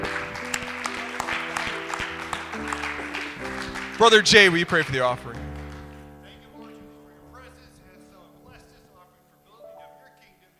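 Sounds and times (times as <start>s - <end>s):
audience applauding: 0.0s - 6.1s
speech: 4.0s - 5.5s.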